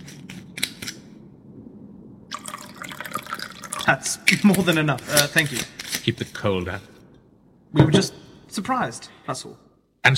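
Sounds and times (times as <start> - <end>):
drink being poured into a glass: 2.3 - 4.2
speech: 3.9 - 6.9, 7.7 - 10.1.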